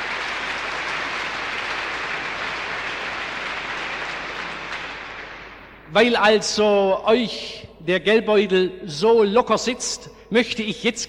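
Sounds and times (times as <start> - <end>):
applause: 0.0 - 5.9
speech: 5.9 - 11.0.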